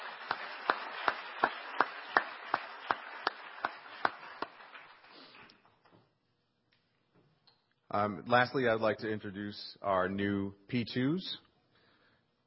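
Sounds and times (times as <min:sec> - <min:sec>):
audience applause: 0:00.0 - 0:05.5
steady run of sharp loud claps: 0:00.0 - 0:05.6
speech: 0:07.9 - 0:11.5.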